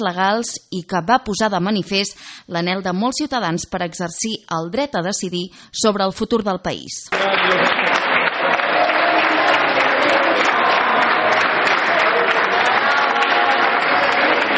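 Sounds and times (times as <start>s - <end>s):
speech: 0.0s - 7.7s
crowd applauding: 7.1s - 14.5s.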